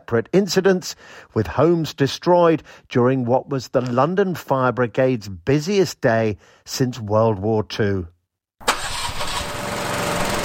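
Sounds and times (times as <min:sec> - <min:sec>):
speech: 0:00.1 - 0:08.7
all-terrain vehicle engine starting: 0:08.6 - 0:10.4.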